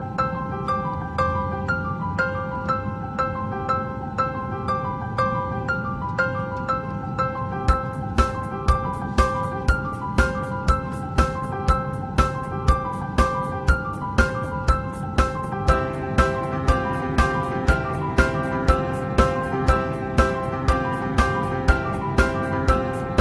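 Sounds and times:
swing piano: 0:00.0 - 0:23.2.

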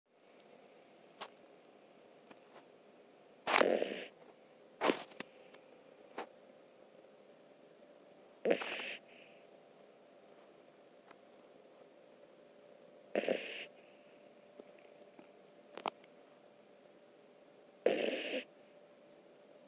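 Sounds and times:
puppy snoring: 0:03.4 - 0:04.2, 0:08.4 - 0:09.3, 0:13.1 - 0:13.8, 0:17.8 - 0:18.5.

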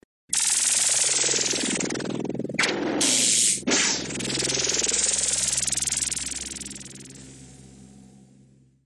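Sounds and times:
laser sound effect: 0:00.3 - 0:07.3.

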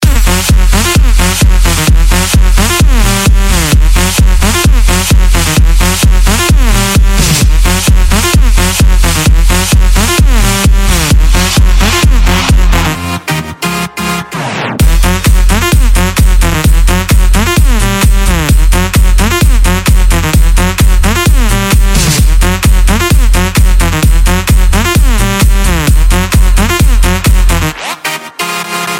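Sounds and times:
club bass music: 0:00.0 - 0:28.9.

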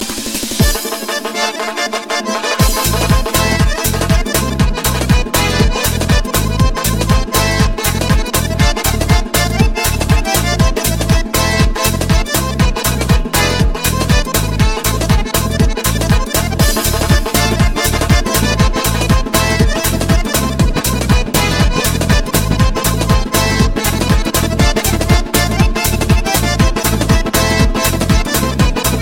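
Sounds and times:
lezginka dance music: 0:00.0 - 0:29.0.

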